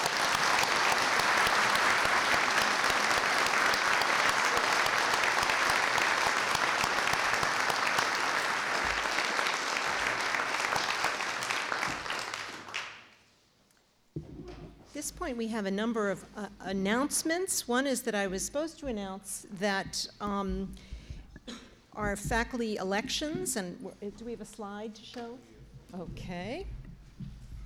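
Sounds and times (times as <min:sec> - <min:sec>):
audience applause: 0:00.0 - 0:13.2
speech: 0:15.3 - 0:20.9, 0:22.0 - 0:26.8.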